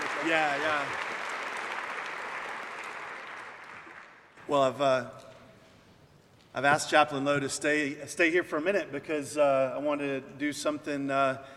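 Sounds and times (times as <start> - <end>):
warm audience applause welcoming two guests: 0.0 - 4.4
speech: 0.2 - 1.1, 4.5 - 5.3, 6.6 - 11.5.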